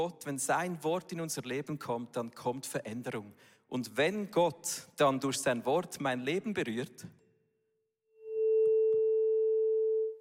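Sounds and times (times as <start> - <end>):
speech: 0.0 - 7.2
440 Hz tuning fork ringing at A440: 8.2 - 10.1.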